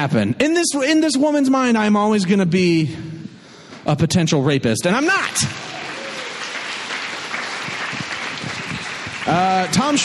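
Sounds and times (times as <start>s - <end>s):
speech: 0.0s - 3.2s, 3.8s - 5.7s, 9.3s - 10.0s
audience applause: 5.0s - 10.0s.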